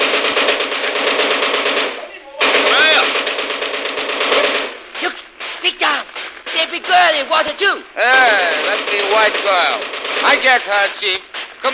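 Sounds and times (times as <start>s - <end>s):
machine gun firing: 0.0s - 11.7s
speech: 7.4s - 11.7s.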